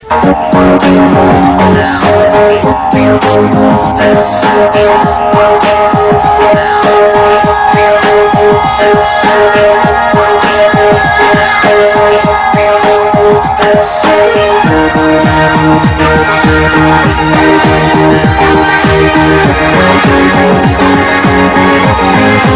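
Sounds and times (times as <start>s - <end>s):
music: 0.0s - 22.5s.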